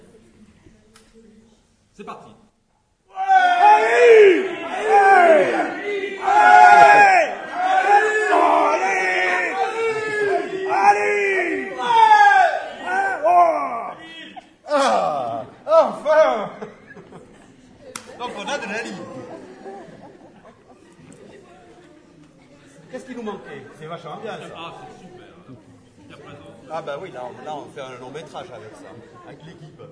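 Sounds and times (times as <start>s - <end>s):
speech: 2.0s - 2.5s, 23.1s - 25.2s, 26.7s - 29.8s
crowd yelling and whooping: 3.1s - 14.2s
laughter: 4.2s - 21.9s.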